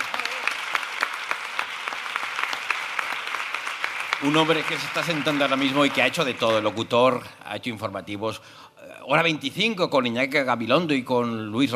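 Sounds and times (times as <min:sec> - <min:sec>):
audience applause: 0:00.0 - 0:06.8
speech: 0:04.2 - 0:11.7.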